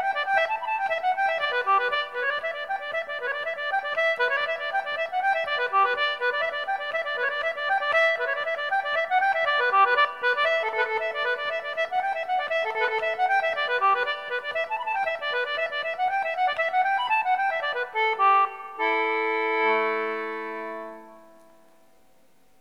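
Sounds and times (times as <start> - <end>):
concertina playing traditional Irish tunes: 0.0 - 22.0.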